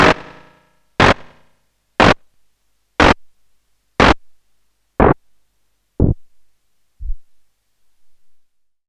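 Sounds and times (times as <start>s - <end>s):
slap: 1.0s - 1.4s, 2.0s - 2.2s, 4.0s - 4.2s.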